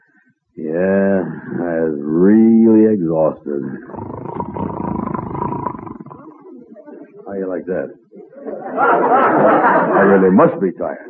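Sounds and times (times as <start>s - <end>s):
speech: 0.6s - 4.8s, 7.4s - 8.0s, 8.6s - 11.0s
person imitating loud rasping snoring: 3.9s - 6.3s
laughter: 8.3s - 11.0s.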